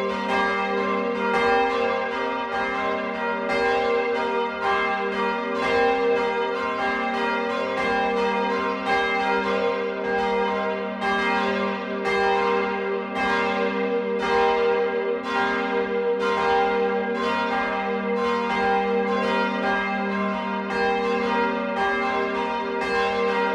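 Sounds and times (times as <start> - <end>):
church bells ringing in Friedberg: 0.0 - 23.5.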